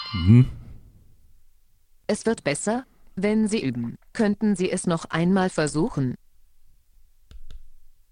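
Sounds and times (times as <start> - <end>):
smart white cane horn warning tone: 0.0 - 0.5
speech: 0.1 - 0.6, 2.1 - 6.2.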